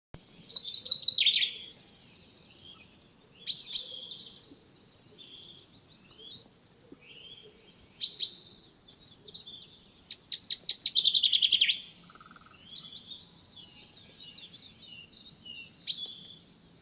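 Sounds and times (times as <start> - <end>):
Common chaffinch Fringilla coelebs singing trilled phrases: 0.2 - 16.7.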